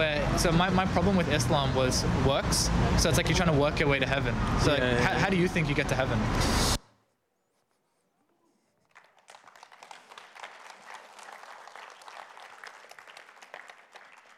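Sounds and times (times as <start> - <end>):
speech: 0.0 - 6.8
audience clapping: 8.8 - 14.3.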